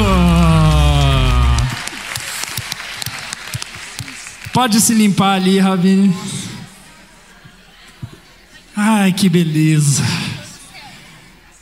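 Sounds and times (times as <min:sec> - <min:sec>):
round of applause: 0:00.0 - 0:05.6
speech: 0:04.6 - 0:06.4, 0:08.8 - 0:10.2.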